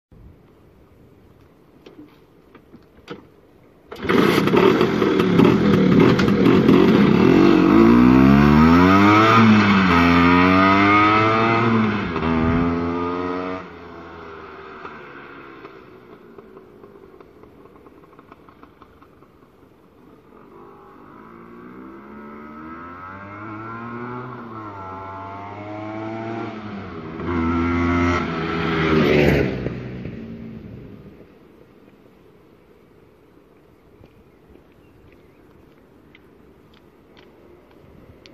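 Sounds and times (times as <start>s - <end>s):
Vespa scooter engine: 3.9s - 30.8s.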